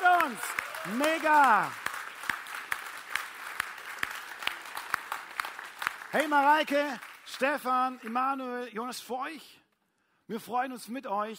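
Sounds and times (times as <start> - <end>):
audience applause: 0.0 - 8.4
speech: 0.8 - 1.8, 6.1 - 9.6, 10.3 - 11.3.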